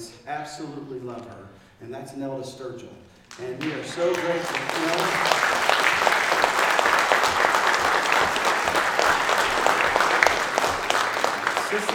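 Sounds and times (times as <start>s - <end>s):
speech: 0.3s - 5.7s, 11.7s - 11.9s
audience applause: 3.3s - 11.9s.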